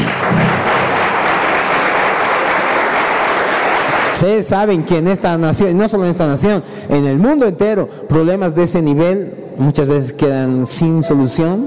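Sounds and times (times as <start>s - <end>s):
audience applause: 0.0s - 4.2s
speech: 4.2s - 11.6s.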